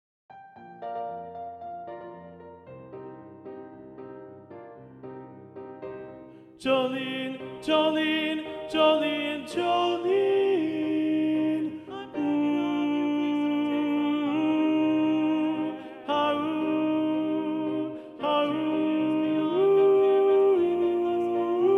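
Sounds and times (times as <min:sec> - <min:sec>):
soprano singing: 0:06.6 - 0:21.7.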